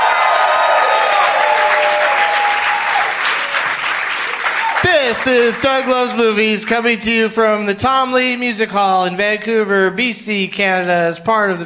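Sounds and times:
crowd cheering and applauding: 0:00.0 - 0:06.8
speech: 0:05.1 - 0:11.6.

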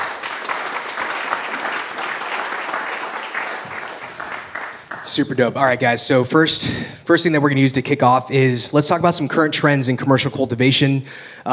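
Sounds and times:
audience round of applause for panelists: 0:00.0 - 0:05.4
speech: 0:05.0 - 0:11.5.

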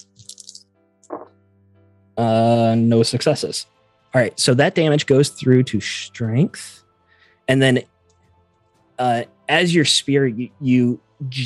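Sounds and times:
dice being rolled: 0:00.1 - 0:00.6
speech: 0:02.2 - 0:06.8, 0:07.5 - 0:07.9, 0:09.0 - 0:11.4.

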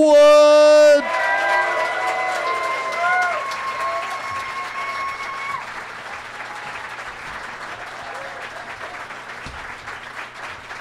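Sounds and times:
crowd noise: 0:00.0 - 0:10.7
audience in San Diego applauding guests on a live show: 0:00.2 - 0:10.7.

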